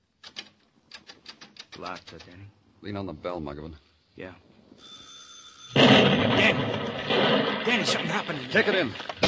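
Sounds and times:
speech: 0:01.8 - 0:04.9, 0:06.3 - 0:09.1
explosion: 0:05.7 - 0:08.8.

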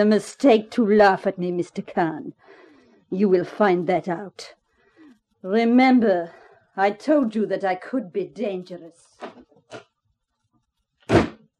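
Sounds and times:
speech: 0:00.0 - 0:04.6, 0:05.4 - 0:09.9
door slammed shut hard: 0:11.1 - 0:11.4.

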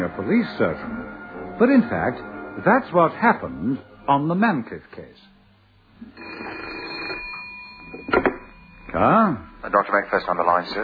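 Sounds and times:
speech: 0:00.0 - 0:05.3, 0:08.9 - 0:10.8
telephone bell ringing: 0:06.1 - 0:10.1.

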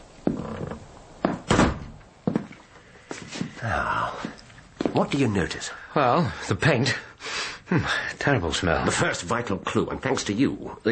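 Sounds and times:
door closing: 0:00.3 - 0:02.1
speech: 0:03.6 - 0:04.3, 0:05.0 - 0:07.1, 0:07.7 - 0:10.9.

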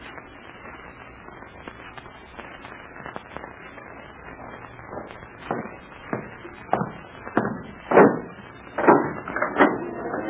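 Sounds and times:
broad thumps: 0:04.4 - 0:10.2
door being opened with mechanical clunks and knocks: 0:07.4 - 0:09.8.

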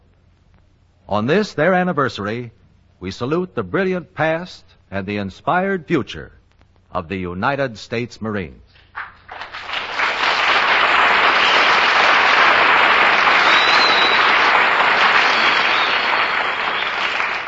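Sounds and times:
speech: 0:01.1 - 0:08.7
studio audience applause: 0:09.0 - 0:17.4.

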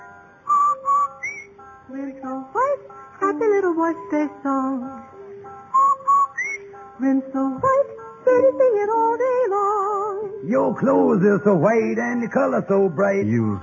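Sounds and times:
person whistling a jingle: 0:00.5 - 0:01.5, 0:05.7 - 0:06.7
speech: 0:03.4 - 0:05.1, 0:07.0 - 0:13.6.

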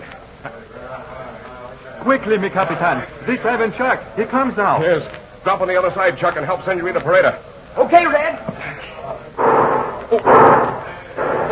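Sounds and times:
hiss: 0:00.0 - 0:11.5
speech: 0:00.4 - 0:01.4, 0:02.0 - 0:08.5, 0:10.1 - 0:10.6
gunshots: 0:09.4 - 0:11.5.

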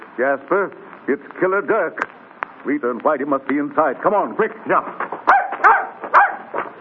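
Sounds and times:
speech: 0:00.2 - 0:05.7
dog barking: 0:05.3 - 0:06.5.

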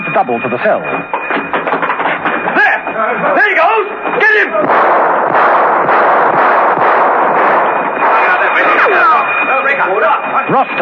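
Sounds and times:
continuous roar of noise: 0:00.0 - 0:10.8
thin high whine: 0:00.0 - 0:10.8
speech: 0:00.2 - 0:01.4, 0:03.5 - 0:05.2, 0:08.6 - 0:10.8
warning gunshots: 0:04.2 - 0:09.6.

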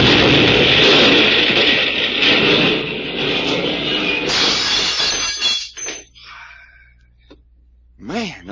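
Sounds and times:
car explosion: 0:00.0 - 0:05.4
crackling, glassy debris from a car explosion: 0:00.0 - 0:06.2.

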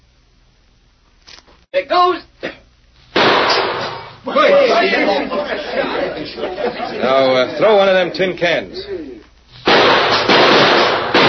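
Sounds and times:
speech: 0:01.8 - 0:02.3, 0:06.9 - 0:09.0
gunshot at a bottle tossed into the air: 0:03.2 - 0:04.1, 0:09.6 - 0:11.2
people chattering and chuckling: 0:04.2 - 0:09.3.

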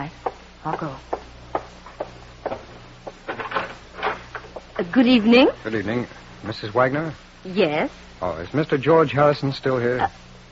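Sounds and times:
speech: 0:00.0 - 0:01.8, 0:04.8 - 0:10.2
door creaking and rattling as it swings: 0:02.6 - 0:04.7
door opening: 0:03.2 - 0:04.6.

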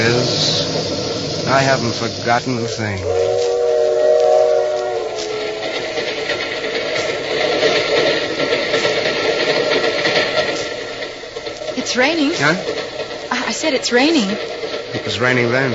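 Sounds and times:
hissing steam: 0:00.0 - 0:15.7
rumbling chug of the train: 0:00.0 - 0:15.7
speech: 0:01.5 - 0:03.2, 0:11.9 - 0:12.8, 0:13.5 - 0:15.7
steam train whistle: 0:01.5 - 0:06.1.

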